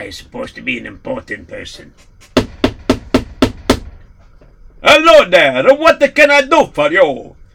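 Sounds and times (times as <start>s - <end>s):
speech: 0.0s - 2.4s, 4.9s - 7.4s
knocking on a house door: 2.3s - 4.1s.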